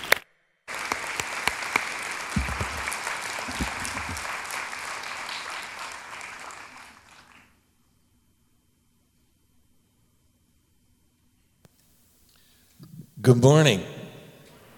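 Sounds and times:
church audience clapping to welcome a reverend: 0:00.0 - 0:07.6
speech: 0:13.3 - 0:13.9.

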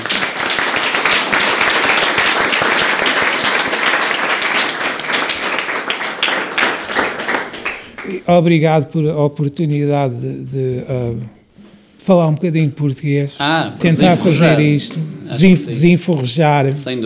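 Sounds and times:
audience applause: 0:00.0 - 0:08.2
speech: 0:08.3 - 0:11.4, 0:12.0 - 0:17.0.

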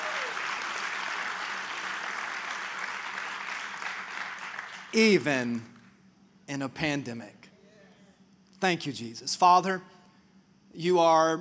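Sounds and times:
crowd clapping in a large indoor space: 0:00.0 - 0:05.9
speech: 0:04.9 - 0:05.7, 0:06.5 - 0:07.4, 0:08.6 - 0:10.0, 0:10.8 - 0:11.4.

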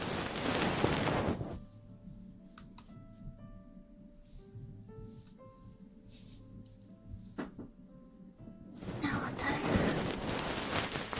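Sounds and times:
ear massage dense rubbing rush: 0:00.0 - 0:01.6, 0:08.8 - 0:11.1.

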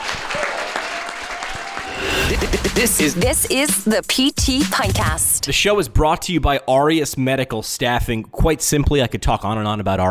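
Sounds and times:
audience applause: 0:00.0 - 0:03.2
speech: 0:02.8 - 0:10.0.

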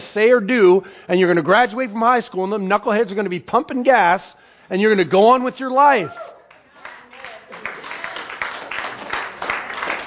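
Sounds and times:
speech: 0:00.1 - 0:06.4
audience clapping: 0:06.4 - 0:10.0.

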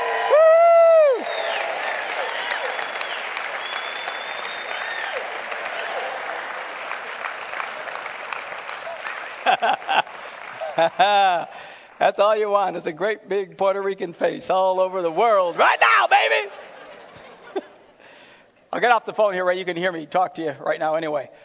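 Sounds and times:
crowd clapping and cheering: 0:00.0 - 0:12.0
loud whistle: 0:02.3 - 0:05.2
laughter: 0:09.4 - 0:11.6, 0:15.1 - 0:18.0
speech: 0:10.8 - 0:16.6, 0:18.8 - 0:21.4
sharp shouts: 0:15.5 - 0:16.6.

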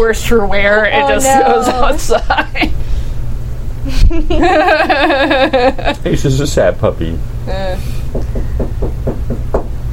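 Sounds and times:
speech: 0:00.0 - 0:02.8, 0:03.9 - 0:08.7
laughter: 0:01.4 - 0:02.7, 0:03.9 - 0:06.1
knocking at a front door: 0:08.1 - 0:09.8.

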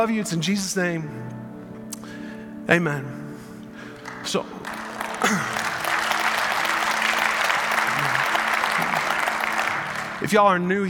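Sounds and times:
speech: 0:00.0 - 0:01.4, 0:02.0 - 0:03.2, 0:04.2 - 0:05.6, 0:10.2 - 0:10.8
audience clapping: 0:03.9 - 0:10.8.

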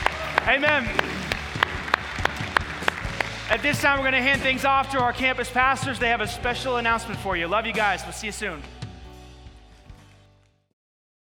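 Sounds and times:
audience applause: 0:00.0 - 0:04.2
speech: 0:00.5 - 0:01.2, 0:03.5 - 0:08.8.

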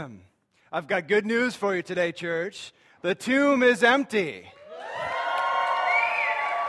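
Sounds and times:
speech: 0:00.0 - 0:05.1
church congregation cheering at an Easter service: 0:04.5 - 0:06.6.

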